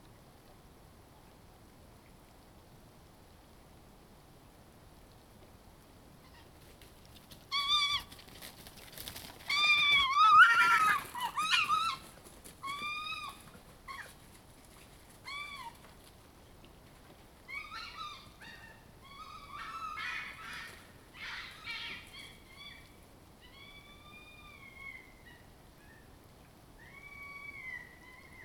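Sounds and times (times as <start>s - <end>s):
low hiss: 0.0s - 10.2s, 10.9s - 28.4s
wavering meowing animal or bird calls in the eastern Parry Sound District of Ontario: 7.5s - 8.1s, 9.5s - 14.2s, 15.2s - 15.9s, 17.4s - 26.1s, 26.8s - 28.4s.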